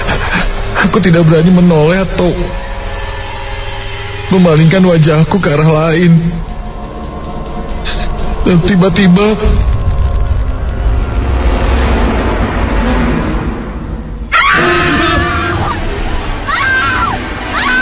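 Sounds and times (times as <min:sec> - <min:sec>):
steady rumbling noise: 0:00.0 - 0:16.5
speech: 0:00.4 - 0:02.6, 0:04.3 - 0:06.5, 0:08.4 - 0:09.7
woman screaming shrilly: 0:14.3 - 0:15.8, 0:16.4 - 0:17.7.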